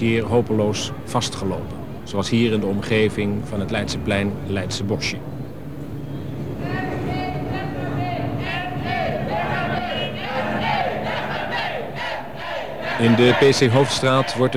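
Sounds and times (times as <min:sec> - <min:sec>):
speech: 0:00.0 - 0:05.4, 0:13.0 - 0:14.5
bystanders shouting at riot police: 0:06.5 - 0:14.5.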